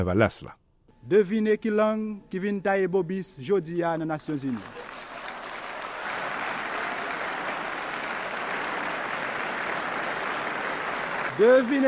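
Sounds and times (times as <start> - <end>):
speech: 0.0 - 4.8, 11.4 - 11.8
applause: 4.2 - 11.8.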